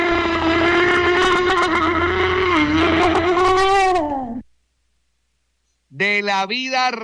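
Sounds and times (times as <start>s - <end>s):
straining groan on the toilet: 0.0s - 4.5s
speech: 6.2s - 7.0s.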